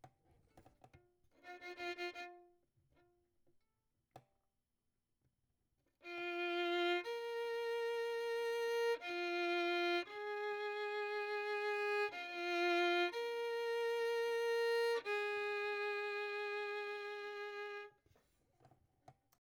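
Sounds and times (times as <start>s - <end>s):
violin: 1.4s - 3.1s, 6.0s - 18.0s.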